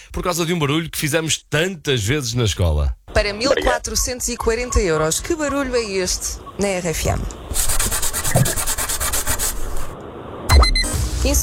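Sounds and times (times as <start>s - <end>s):
speech: 0.1s - 7.7s, 11.3s - 11.4s
rubber eraser rubbing out pencil marks: 7.5s - 9.9s.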